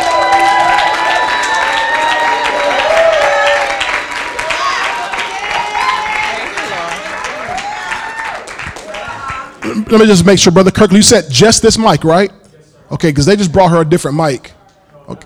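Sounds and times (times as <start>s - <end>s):
people shouting: 0.0s - 8.4s
church congregation applauding and cheering to welcome a woman speaker: 0.0s - 10.3s
speech: 9.9s - 15.2s.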